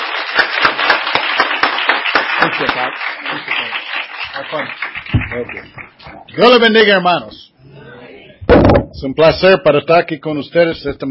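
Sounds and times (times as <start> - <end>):
crowd loud sustained applause: 0.0 - 5.9
speech: 2.6 - 3.8, 4.4 - 7.5, 8.7 - 11.0.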